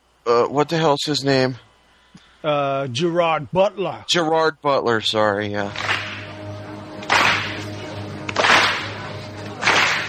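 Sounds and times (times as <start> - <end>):
speech: 0.2 - 1.7, 2.4 - 5.9
slow clap: 5.7 - 10.0.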